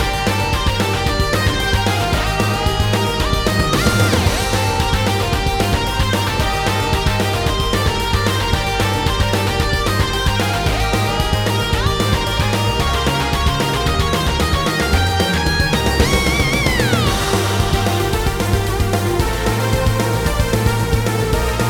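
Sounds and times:
music loop: 0.0s - 21.6s.

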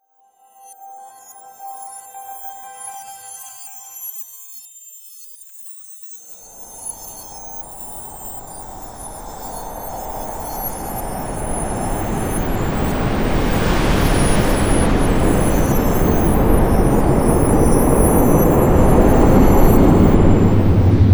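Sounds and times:
rain: 7.2s - 21.0s.

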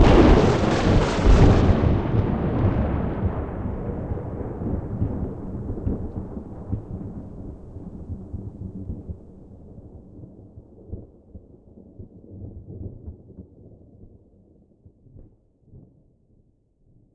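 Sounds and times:
long thunder: 0.0s - 11.0s.

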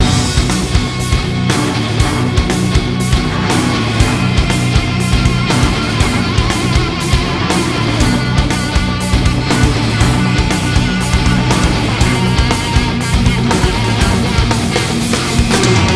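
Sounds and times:
band playing: 0.0s - 15.9s.

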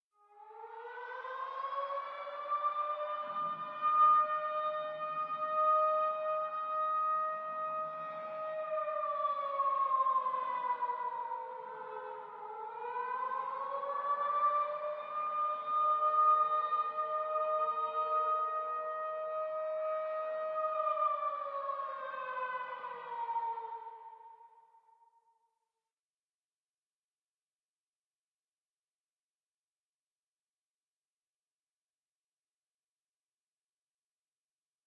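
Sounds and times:
distant air siren: 0.2s - 25.3s.

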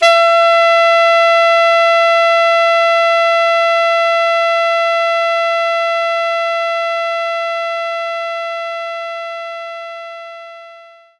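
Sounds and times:
alto sax playing E5: 0.0s - 8.6s.

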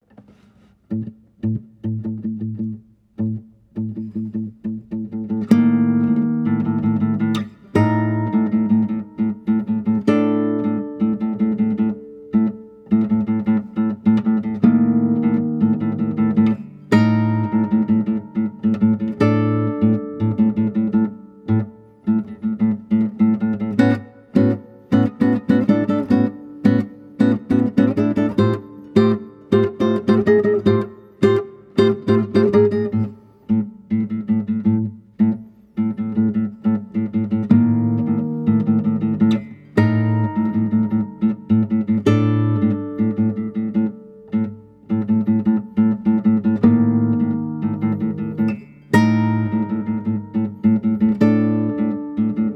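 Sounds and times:
guitar background music: 0.2s - 52.5s.

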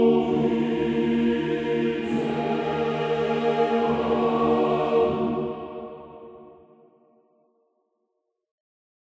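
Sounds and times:
choir ambience from a game: 0.0s - 7.1s.

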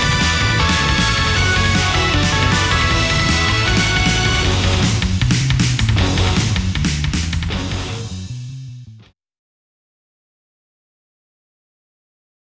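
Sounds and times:
guitar remix: 0.0s - 9.0s.

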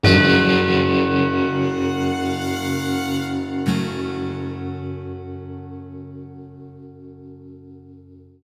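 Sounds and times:
empty jail music stinger: 0.0s - 8.4s.

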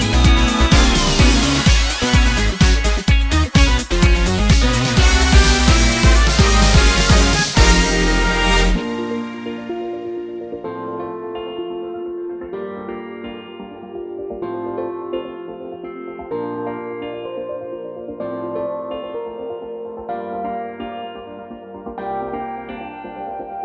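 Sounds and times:
battle background music: 0.0s - 10.3s.

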